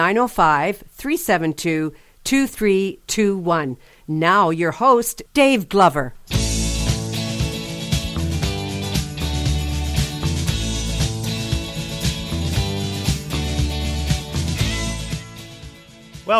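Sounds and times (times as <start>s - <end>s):
speech: 0.0s - 6.3s
rock song with drums, bass and electric guitar: 6.3s - 16.3s.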